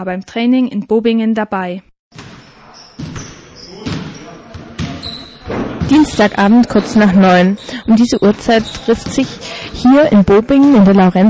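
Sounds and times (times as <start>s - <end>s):
speech: 0.0s - 1.9s, 5.9s - 11.2s
basketball bouncing during youth streetball session in Bobingen's Laurentiushalle: 2.1s - 9.4s.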